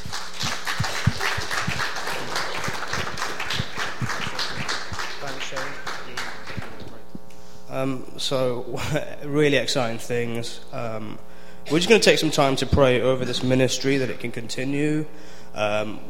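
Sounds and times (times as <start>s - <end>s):
audience applause: 0.0s - 7.0s
speech: 7.8s - 16.0s.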